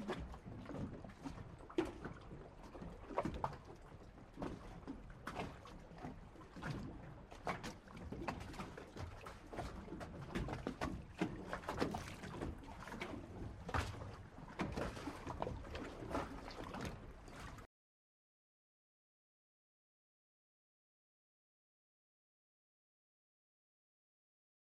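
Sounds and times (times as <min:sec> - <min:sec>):
water against the bottom of a boat: 0:00.0 - 0:17.7.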